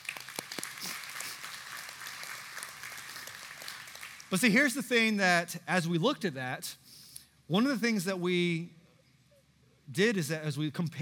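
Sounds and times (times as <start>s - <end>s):
audience clapping: 0.0s - 4.8s
speech: 4.3s - 6.8s, 7.5s - 8.8s, 9.9s - 11.0s.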